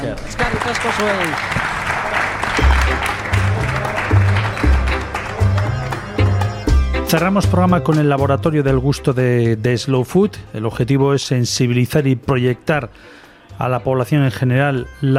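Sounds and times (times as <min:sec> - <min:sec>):
audience applause: 0:00.0 - 0:06.6
speech: 0:00.1 - 0:01.7, 0:07.1 - 0:15.1.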